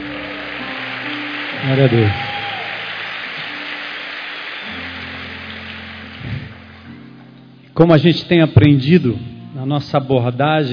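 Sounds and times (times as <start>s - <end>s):
audience applauding: 0.0s - 7.3s
speech: 1.6s - 2.3s, 7.8s - 10.7s.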